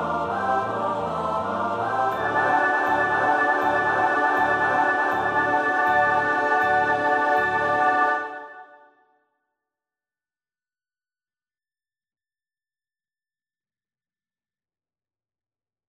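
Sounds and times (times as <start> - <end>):
soprano alto tenor bass voices: 0.0 - 8.6.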